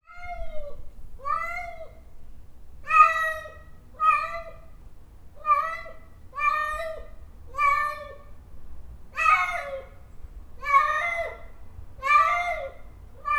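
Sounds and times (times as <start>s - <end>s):
domestic cat giving falling miaows: 0.1s - 2.0s, 2.8s - 4.7s, 5.4s - 8.3s, 9.2s - 10.0s, 10.6s - 13.3s.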